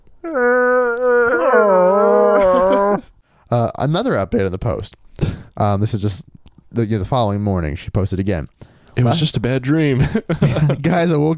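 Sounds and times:
speech: 0.2 - 0.6, 3.5 - 11.3
weird cat-like yowl with garbled undertone: 0.2 - 3.1
laughter: 2.3 - 3.0, 10.0 - 11.0.

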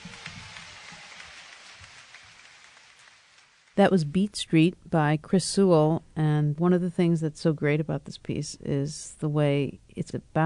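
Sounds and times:
audience applause for the band: 0.0 - 3.8
speech: 3.8 - 10.4.

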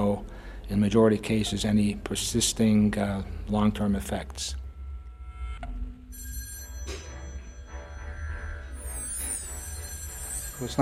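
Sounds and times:
low hum: 0.0 - 10.8
speech: 0.2 - 4.6, 10.6 - 10.8
old-fashioned telephone bell ringing: 6.0 - 10.8.

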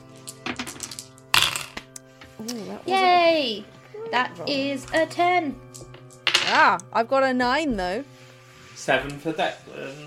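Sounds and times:
dice clattering across a hard surface: 0.4 - 1.9
speech: 2.4 - 5.6, 6.5 - 8.1, 8.8 - 10.0.

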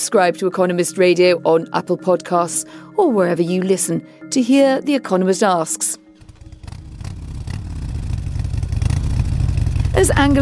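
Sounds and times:
speech: 0.0 - 6.0, 10.0 - 10.3
motorcycle engine revving: 6.2 - 10.3.

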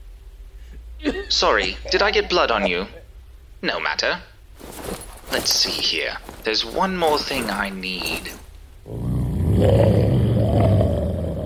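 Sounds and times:
speech: 1.0 - 3.0, 3.6 - 4.3, 5.3 - 9.0
werewolf growl: 8.9 - 11.4.

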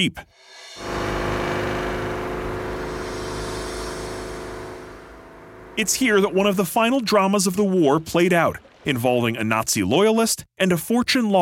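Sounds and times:
speech: 0.0 - 1.0, 5.8 - 11.4
car engine drone on a drive to Lake Fuschel: 0.8 - 6.7.

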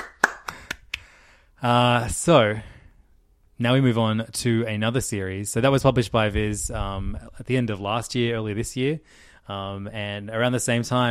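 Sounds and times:
hand claps: 0.0 - 1.1
speech: 1.6 - 2.7, 3.6 - 11.0.

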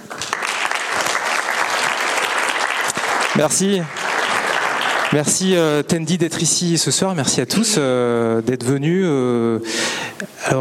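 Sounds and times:
audience applause: 0.0 - 5.9
speech: 3.4 - 4.1, 5.1 - 10.5.

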